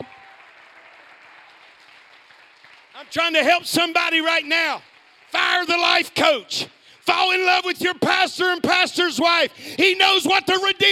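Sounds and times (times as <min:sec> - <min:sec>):
audience clapping hands: 0:00.0 - 0:07.7
speech: 0:03.0 - 0:10.9.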